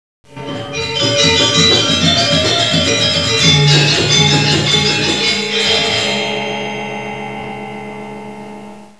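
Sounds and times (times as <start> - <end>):
rhythmic ringtone music: 0.3 - 7.4.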